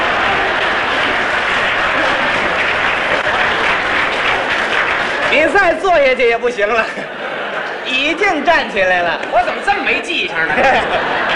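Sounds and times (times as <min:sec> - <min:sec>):
audience applauding and cheering: 0:00.0 - 0:06.4
laughter: 0:00.0 - 0:11.3
speech: 0:05.6 - 0:07.2, 0:07.9 - 0:11.3.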